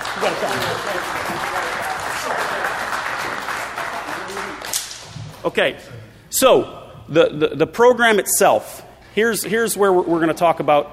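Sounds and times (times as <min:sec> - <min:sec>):
audience applause: 0:00.0 - 0:04.8
speech: 0:00.2 - 0:02.7, 0:05.4 - 0:10.9.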